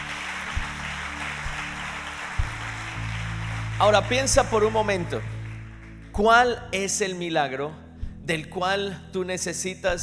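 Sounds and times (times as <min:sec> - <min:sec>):
audience applauding: 0:00.0 - 0:06.2
speech: 0:03.8 - 0:05.3, 0:06.2 - 0:10.0.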